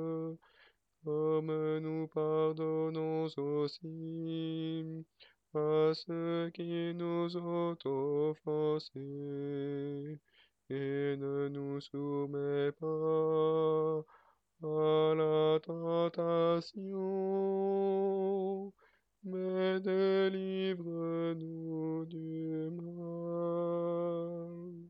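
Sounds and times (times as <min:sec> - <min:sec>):
alto voice singing a prayer at a wedding: 0:00.0 - 0:24.8.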